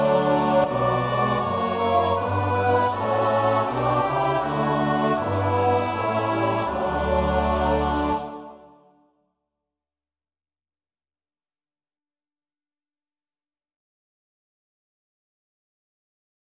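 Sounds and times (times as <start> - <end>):
soprano alto tenor bass choir: 0.0 - 9.1.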